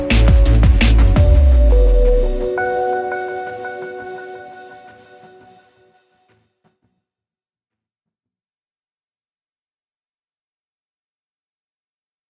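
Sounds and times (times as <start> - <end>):
crackling beats: 0.0 - 5.8.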